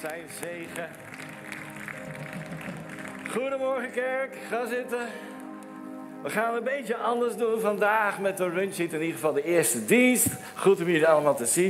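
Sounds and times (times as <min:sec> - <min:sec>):
speech: 0:00.0 - 0:01.3, 0:03.3 - 0:05.3, 0:06.2 - 0:11.6
large crowd applauding: 0:00.0 - 0:04.2.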